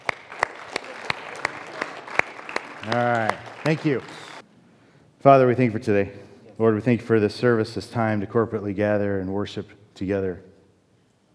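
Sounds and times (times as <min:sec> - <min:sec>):
sparse handclaps: 0:00.0 - 0:04.4
hiss: 0:00.0 - 0:11.3
speech: 0:02.8 - 0:04.2, 0:05.2 - 0:10.5.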